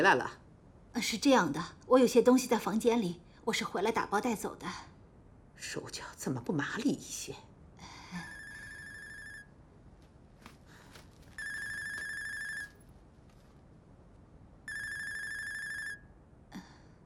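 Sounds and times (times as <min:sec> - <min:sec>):
speech: 0:00.0 - 0:00.4, 0:01.0 - 0:04.9, 0:05.6 - 0:08.3
telephone ringing: 0:08.3 - 0:09.5, 0:11.3 - 0:12.9, 0:14.7 - 0:16.1.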